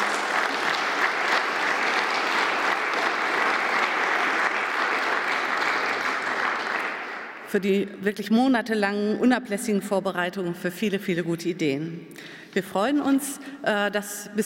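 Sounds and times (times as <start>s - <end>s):
audience applause: 0.0s - 7.5s
speech: 7.5s - 14.4s.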